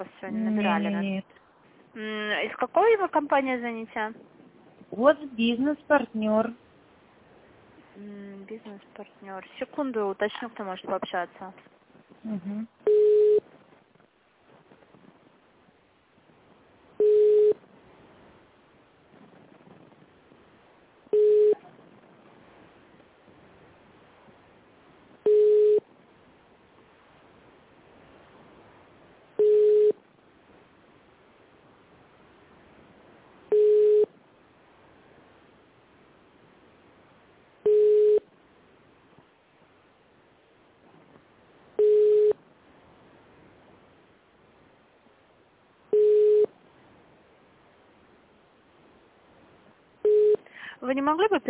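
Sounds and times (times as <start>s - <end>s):
speech: 0.0s - 1.4s, 2.0s - 4.3s, 4.9s - 6.6s, 8.0s - 13.3s, 50.8s - 51.4s
faint hiss: 0.0s - 51.4s
unanswered telephone ringback tone: 12.9s - 13.4s, 17.0s - 17.6s, 21.1s - 21.6s, 25.3s - 25.8s, 29.4s - 30.0s, 33.5s - 34.1s, 37.7s - 38.2s, 41.8s - 42.4s, 45.9s - 46.5s, 50.0s - 50.4s.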